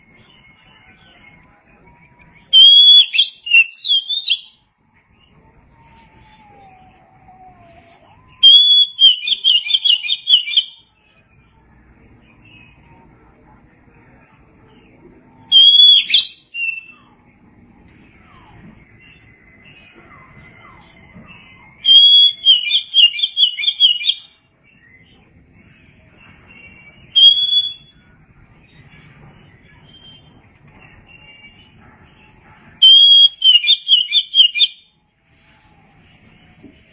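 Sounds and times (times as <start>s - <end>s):
Oriental magpie-robin warbling whistles: 2.5s - 4.6s, 8.3s - 10.8s, 15.5s - 17.1s, 21.6s - 24.4s, 26.7s - 27.9s, 32.8s - 34.9s.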